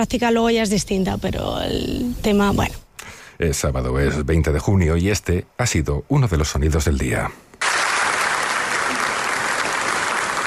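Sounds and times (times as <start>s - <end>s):
speech: 0.0s - 2.8s, 3.4s - 7.6s
audience applause: 7.6s - 10.4s.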